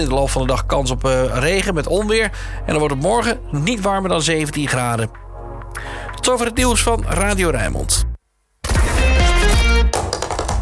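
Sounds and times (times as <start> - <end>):
speech: 0.0 - 8.1
tap dancing footsteps: 9.6 - 10.6.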